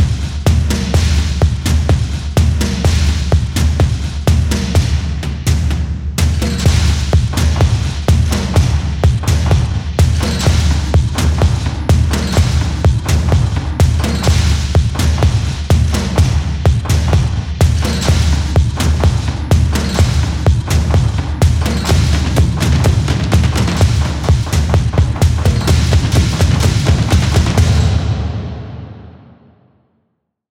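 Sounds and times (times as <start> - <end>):
percussion: 0.0 - 29.4.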